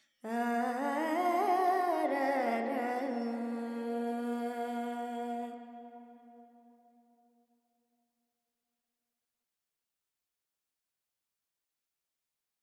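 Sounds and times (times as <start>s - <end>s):
Carnatic female vocal alaps in Dorian: 0.3s - 5.7s.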